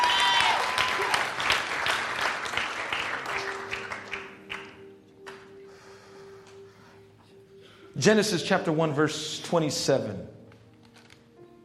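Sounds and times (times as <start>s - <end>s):
audience clapping hands: 0.0s - 5.5s
speech: 8.0s - 10.4s.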